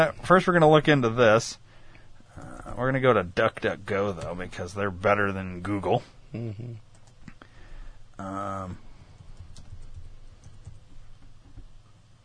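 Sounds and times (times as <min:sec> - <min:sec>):
speech: 0:00.0 - 0:01.6, 0:02.4 - 0:06.9, 0:08.2 - 0:08.8
keystrokes on a computer keyboard: 0:09.2 - 0:11.6.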